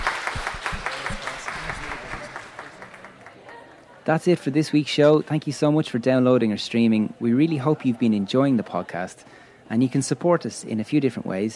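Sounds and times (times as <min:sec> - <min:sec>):
audience applause: 0:00.0 - 0:03.6
speech: 0:04.0 - 0:11.5.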